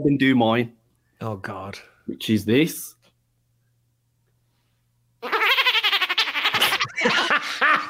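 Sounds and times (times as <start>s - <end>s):
speech: 0.0s - 3.0s
person imitating dolphin squeaks: 5.2s - 6.8s
laughter: 6.3s - 7.8s.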